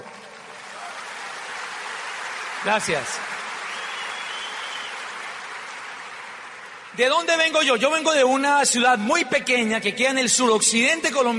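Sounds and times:
audience applause: 0.0 - 7.6
speech: 2.6 - 3.3, 7.0 - 11.3.

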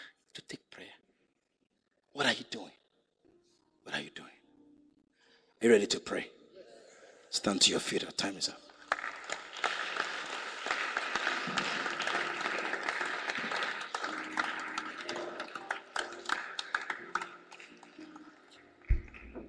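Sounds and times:
speech: 2.2 - 2.8, 5.6 - 6.4, 7.3 - 8.7
audience clapping: 8.7 - 19.4.

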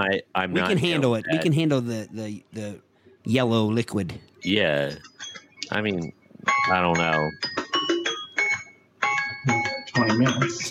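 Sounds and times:
speech: 0.0 - 7.6, 9.5 - 10.6
phone notification tone: 4.9 - 10.6.

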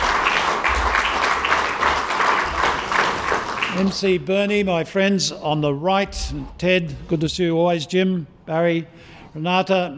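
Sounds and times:
round of applause: 0.0 - 4.1
speech: 3.8 - 9.9.

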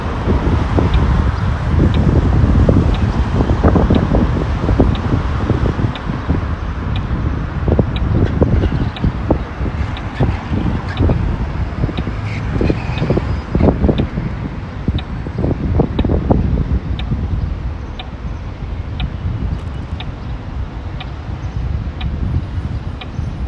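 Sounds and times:
traffic rumble in Modiin, Israel: 0.0 - 23.4
wind buffeting the microphone: 0.0 - 23.4
faint regular ticking clicks: 0.6 - 16.3, 16.9 - 17.3, 18.9 - 21.3.

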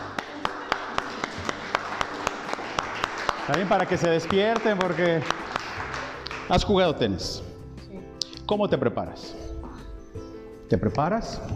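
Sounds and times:
audience applause: 0.0 - 6.8
speech: 3.5 - 5.5, 6.5 - 7.4, 8.5 - 9.4, 10.7 - 11.5.

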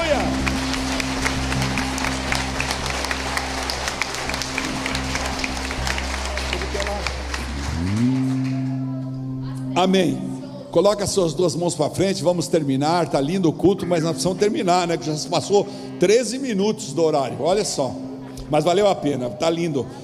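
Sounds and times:
audience applauding: 0.0 - 8.9
low organ or keyboard drone: 0.0 - 20.0
speech: 9.8 - 20.0.

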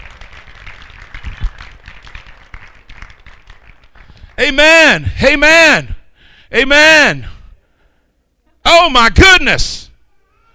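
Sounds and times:
audience clapping hands: 0.0 - 4.6
speech: 4.4 - 5.9, 6.5 - 7.3, 8.7 - 9.8.

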